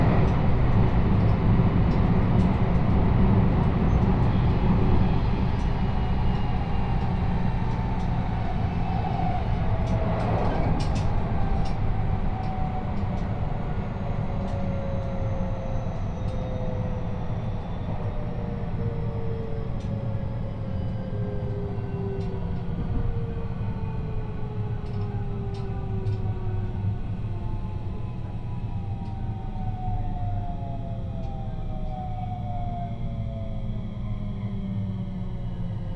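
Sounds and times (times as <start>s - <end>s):
train on the Sanyo and Ako lines rumbling: 0.0s - 35.9s.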